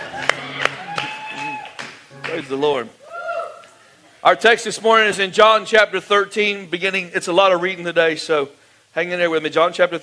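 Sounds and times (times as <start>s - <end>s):
clapping: 0.2s - 2.4s
speech: 2.3s - 3.0s, 4.2s - 10.0s.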